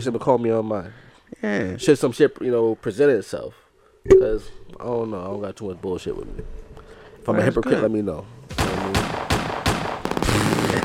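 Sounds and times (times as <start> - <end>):
speech: 0.0 - 6.6, 7.2 - 9.3
automatic gunfire burst: 8.5 - 10.8
loud gunshots: 8.5 - 10.8.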